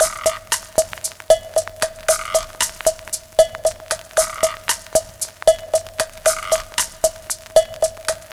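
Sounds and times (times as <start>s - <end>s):
bossa breakbeat drums: 0.0s - 8.3s.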